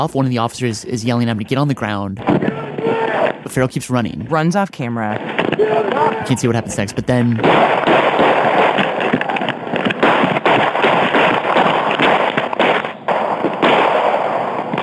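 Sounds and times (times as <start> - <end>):
speech: 0.0 - 8.3
police gunshots fired in a burst: 2.2 - 3.7, 5.0 - 14.8.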